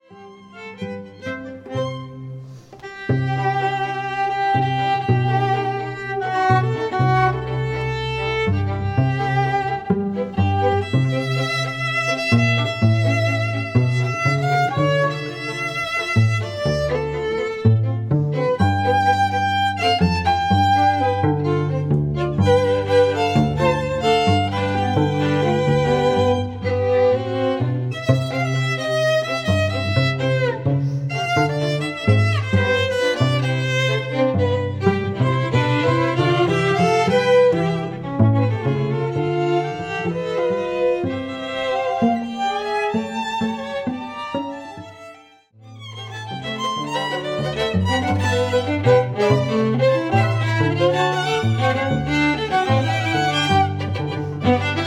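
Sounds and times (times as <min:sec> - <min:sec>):
Latin string ensemble: 0:00.0 - 0:54.8.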